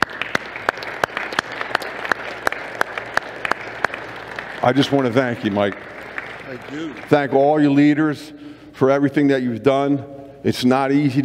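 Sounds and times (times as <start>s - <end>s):
audience applause: 0.0s - 7.9s
speech: 4.6s - 11.2s.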